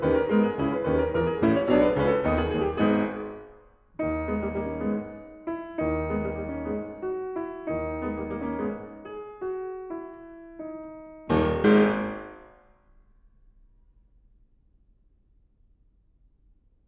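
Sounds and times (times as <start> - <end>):
presto prelude in G-sharp minor: 0.0 - 3.3, 4.0 - 12.4.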